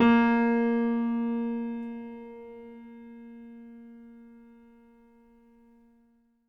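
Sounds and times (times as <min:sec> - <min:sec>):
stereo acoustic piano: 0:00.0 - 0:05.7.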